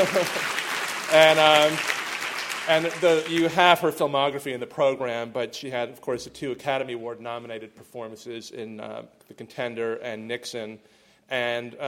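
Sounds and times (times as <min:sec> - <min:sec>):
speech: 0:00.0 - 0:02.0, 0:02.6 - 0:11.8
audience applause at a film program honoring an actress: 0:00.0 - 0:03.8.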